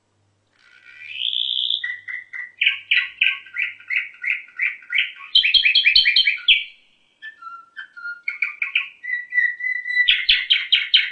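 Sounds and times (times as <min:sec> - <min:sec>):
canary singing whistles and trills: 0:00.5 - 0:11.1.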